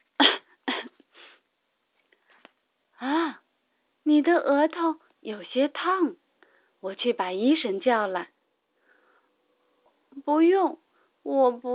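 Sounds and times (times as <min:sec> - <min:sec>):
child coughing: 0:00.2 - 0:01.0
speech: 0:04.1 - 0:06.2, 0:06.8 - 0:08.3, 0:10.3 - 0:11.7.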